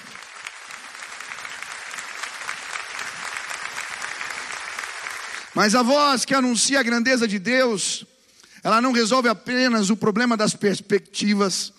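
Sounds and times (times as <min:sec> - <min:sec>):
audience applause: 0:00.0 - 0:05.8
speech: 0:05.6 - 0:11.7.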